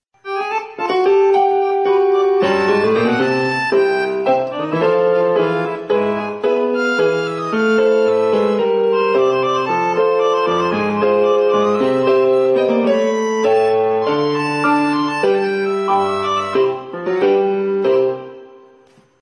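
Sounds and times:
piano improvisation: 0.2 - 19.2.

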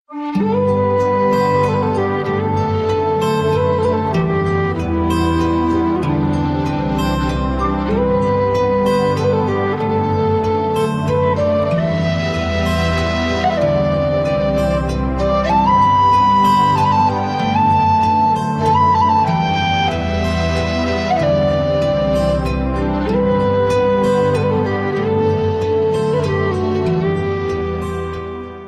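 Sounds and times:
Celtic music: 0.1 - 28.6.

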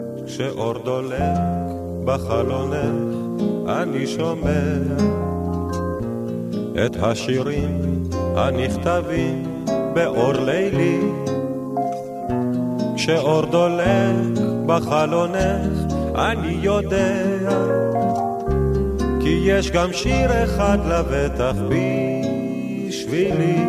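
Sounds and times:
romantic music: 0.0 - 23.6.

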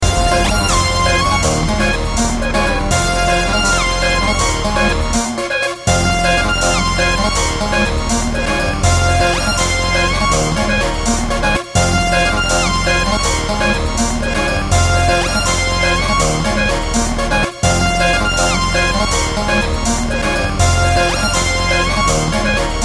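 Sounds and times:
music beat: 0.0 - 22.8.

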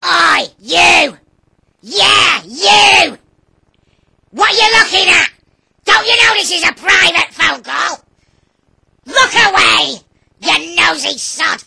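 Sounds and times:
child shouting angrily: 0.0 - 1.2, 1.8 - 3.2, 4.4 - 5.3, 5.9 - 8.0, 9.1 - 11.6.

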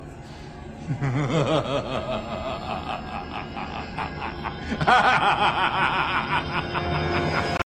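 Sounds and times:
person laughing: 0.9 - 7.6.

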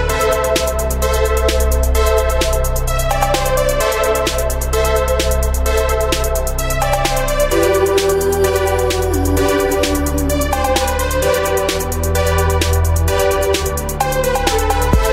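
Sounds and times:
freestyle breakbeat drums: 0.1 - 15.1.

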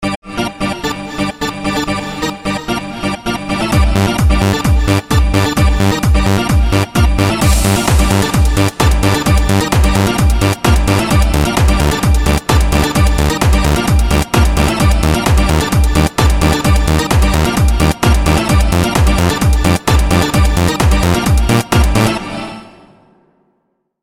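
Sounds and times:
dance party music: 0.0 - 23.4.

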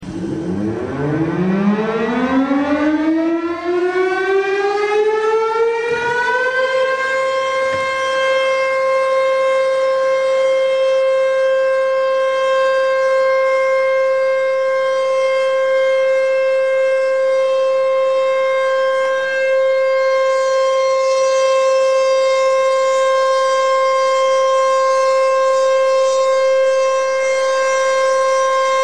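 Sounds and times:
air raid siren: 0.0 - 28.8.

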